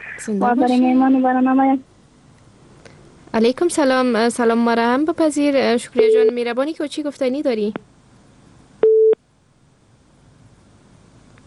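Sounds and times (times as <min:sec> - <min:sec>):
speech: 0:00.2 - 0:01.9, 0:03.4 - 0:07.9
telephone busy tone after a call is cut off: 0:08.8 - 0:09.2.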